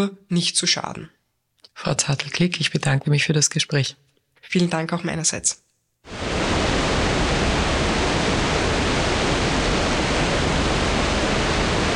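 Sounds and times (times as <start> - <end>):
speech: 0.0 - 1.2, 1.8 - 6.3
geyser erupting from the ground: 6.1 - 11.9.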